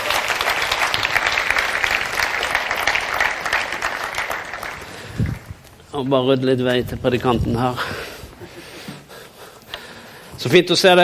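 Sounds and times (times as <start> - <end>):
audience applause: 0.0 - 5.7
speech: 6.0 - 8.0, 10.4 - 11.0.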